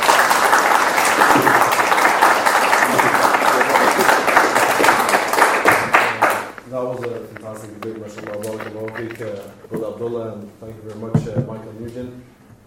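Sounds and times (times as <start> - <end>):
audience applause after a debate: 0.0 - 9.1.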